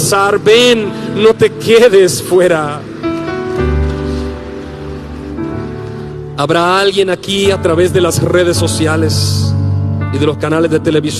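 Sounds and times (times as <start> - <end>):
speech: 0.1 - 2.9, 6.4 - 9.5, 10.1 - 11.1
church audience applauding: 1.9 - 6.2.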